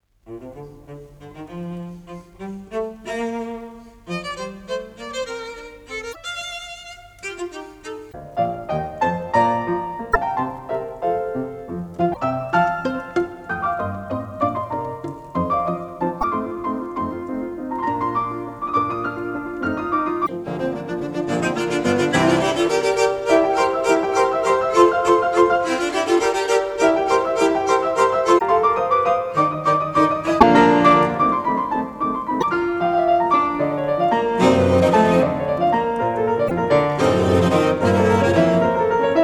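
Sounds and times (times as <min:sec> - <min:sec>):
trio scherzo allegro in B flat major: 0:00.1 - 0:39.2.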